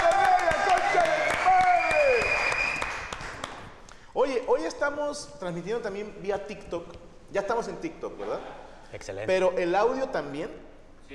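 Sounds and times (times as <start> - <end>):
audience applause: 0.0 - 3.7
speech: 4.5 - 11.1.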